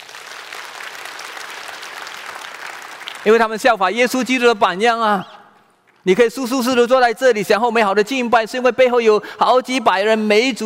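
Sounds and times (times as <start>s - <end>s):
church congregation applauding volunteer ministry teams: 0.0s - 3.7s
speech: 3.2s - 5.4s, 6.0s - 10.6s.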